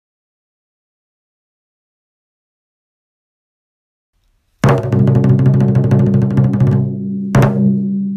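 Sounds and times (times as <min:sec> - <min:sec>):
taiko drums: 0:04.6 - 0:08.0.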